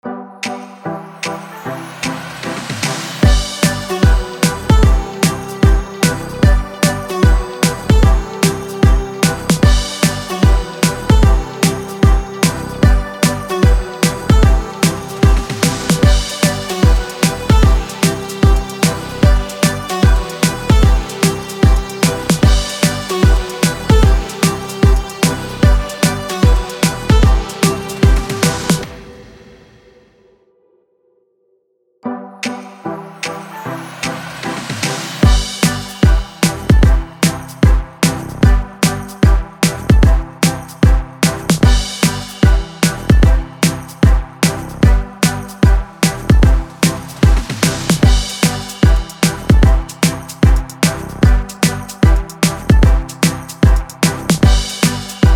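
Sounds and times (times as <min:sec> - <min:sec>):
holiday music beat in G major at 150 BPM: 0:00.0 - 0:29.7, 0:32.1 - 0:55.3.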